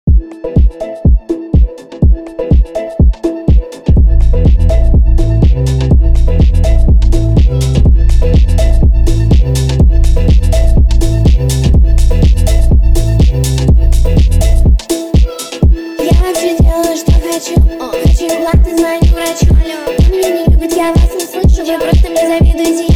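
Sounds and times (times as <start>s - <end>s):
phonk remix with boosted bass: 0.1s - 22.9s.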